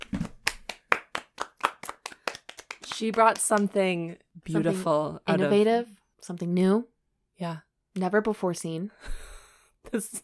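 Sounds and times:
hand clapping: 0.0 - 4.0
speech: 3.0 - 9.2, 9.9 - 10.2.

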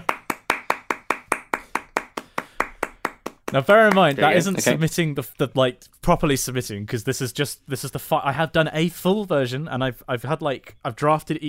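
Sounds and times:
round of applause: 0.0 - 4.8
speech: 3.5 - 11.4.

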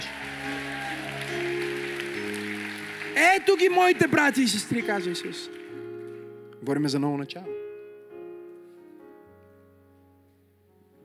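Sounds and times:
audience applause: 0.0 - 5.9
sustained keyboard chords: 0.0 - 11.0
speech: 3.2 - 5.6, 6.6 - 7.6.

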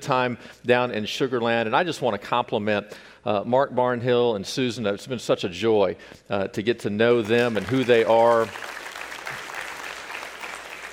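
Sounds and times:
speech: 0.1 - 8.8
audience applause: 7.2 - 10.9.

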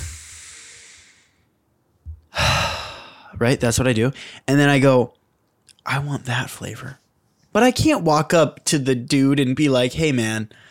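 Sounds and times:
person sniffing the air in an ice cream shop: 0.0 - 1.4
long soft breathy airflow: 0.0 - 1.5, 2.3 - 3.4
speech: 3.4 - 5.2, 5.8 - 7.0, 7.6 - 10.6.

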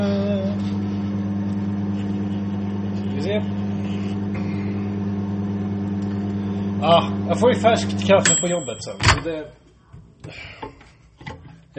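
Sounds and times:
microwave oven humming while heating a little coffee: 0.0 - 9.1
speech: 3.2 - 3.6, 6.8 - 9.6.

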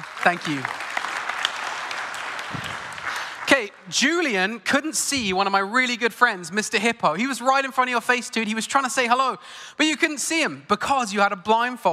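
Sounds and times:
audience applause: 0.0 - 3.7
speech: 0.2 - 0.8, 3.6 - 11.9.

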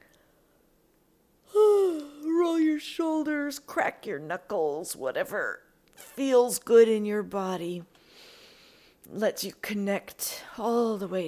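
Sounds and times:
person yawning during a stretch: 1.5 - 2.3
speech: 3.5 - 8.0, 9.0 - 11.2.

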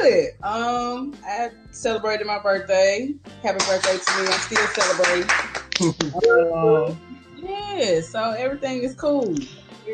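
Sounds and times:
speech: 0.0 - 9.9
hand clapping: 3.6 - 7.0.

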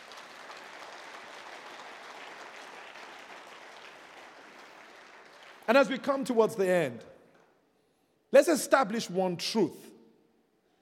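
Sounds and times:
audience clapping: 0.0 - 6.4
speech: 5.7 - 7.1, 8.3 - 9.9.

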